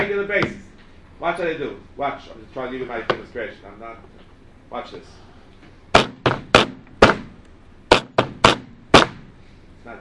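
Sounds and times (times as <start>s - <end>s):
speech: 0.2s - 0.6s, 1.2s - 5.2s
hammer banging on metal: 5.9s - 9.3s.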